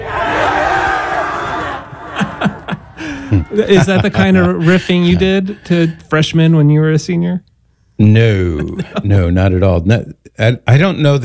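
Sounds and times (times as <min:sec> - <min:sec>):
people whooping and shouting: 0:00.0 - 0:03.8
crowd of hundreds of seniors screaming: 0:00.0 - 0:04.1
laughter: 0:00.0 - 0:06.2, 0:08.2 - 0:09.4
speech: 0:03.5 - 0:11.2.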